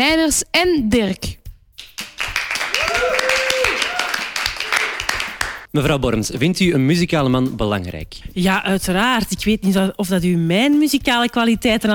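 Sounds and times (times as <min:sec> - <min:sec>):
speech: 0:00.0 - 0:01.4, 0:05.7 - 0:11.9
audience applause: 0:02.1 - 0:05.7.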